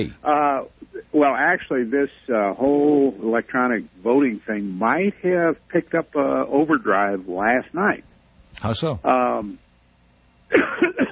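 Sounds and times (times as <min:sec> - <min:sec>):
speech: 0:00.0 - 0:09.6
caller coughing on a telephone line: 0:10.5 - 0:11.1.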